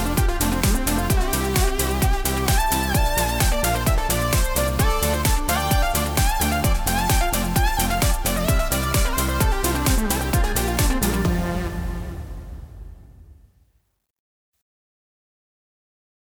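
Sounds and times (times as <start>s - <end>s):
Yamaha MIDI music: 0.0s - 12.6s.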